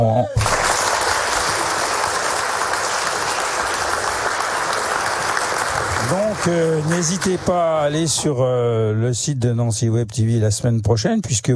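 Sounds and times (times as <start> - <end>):
speech: 0.0 - 0.4, 6.4 - 11.5
live audience applauding: 0.4 - 8.3.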